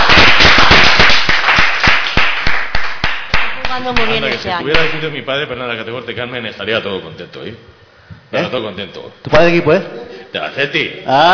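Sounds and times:
loud crowd applause: 0:00.0 - 0:04.3
speech: 0:03.8 - 0:11.3.

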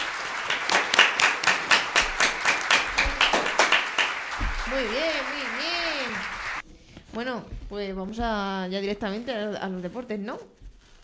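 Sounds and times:
small group clapping: 0:00.0 - 0:06.6
speech: 0:04.7 - 0:05.8, 0:07.2 - 0:10.6.

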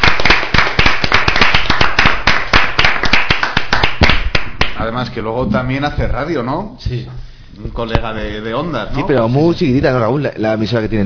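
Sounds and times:
applause: 0:00.0 - 0:04.8
speech: 0:05.0 - 0:11.0.

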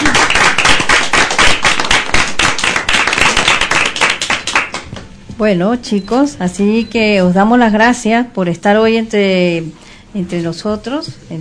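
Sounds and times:
audience applause: 0:00.0 - 0:04.9
speech: 0:05.4 - 0:11.4.

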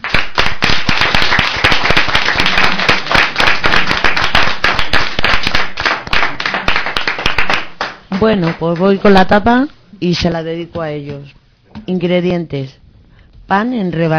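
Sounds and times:
audience applause: 0:00.0 - 0:08.0
speech: 0:08.2 - 0:12.8, 0:13.5 - 0:14.1.

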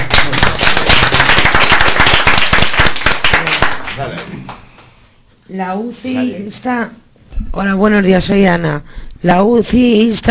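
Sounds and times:
applause: 0:00.0 - 0:04.9
speech: 0:05.5 - 0:10.3.

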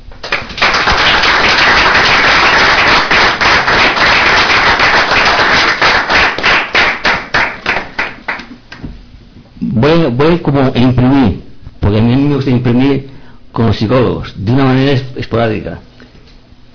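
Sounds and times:
applause: 0:00.2 - 0:08.5
speech: 0:09.8 - 0:15.9.

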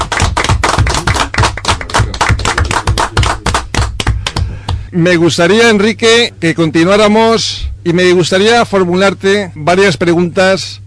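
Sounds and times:
audience applause: 0:00.0 - 0:04.6
speech: 0:04.9 - 0:10.8.

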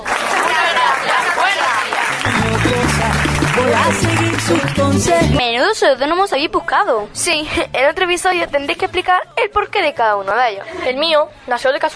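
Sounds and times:
audience applause: 0:00.0 - 0:05.2
speech: 0:03.9 - 0:11.9.

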